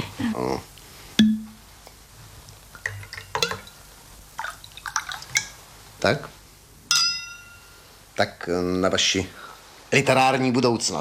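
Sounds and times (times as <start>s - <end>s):
glass clinking: 1.2s - 1.6s, 2.8s - 3.8s, 4.4s - 5.6s, 6.9s - 7.9s
whisky pouring into a glass with splashes and drips: 4.4s - 5.6s
speech: 6.0s - 6.4s, 8.2s - 10.9s.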